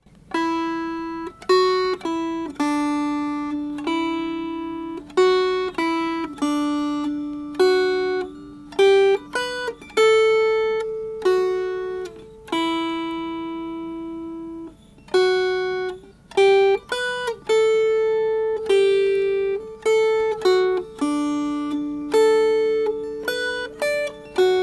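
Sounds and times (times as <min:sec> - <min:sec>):
melody: 0:00.3 - 0:24.6.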